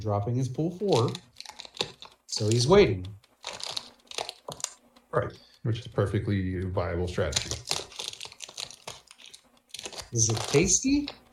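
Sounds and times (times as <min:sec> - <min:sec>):
speech: 0:00.0 - 0:01.4, 0:02.4 - 0:03.2, 0:05.1 - 0:07.6, 0:10.1 - 0:11.2
crinkly plastic bag of licorice being opened: 0:00.8 - 0:04.8, 0:07.2 - 0:11.3.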